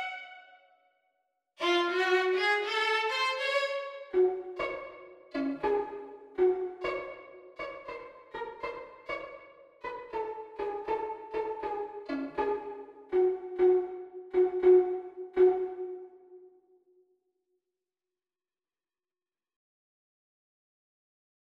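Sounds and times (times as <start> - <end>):
violin duet practice: 0.0 - 0.4, 1.6 - 16.1.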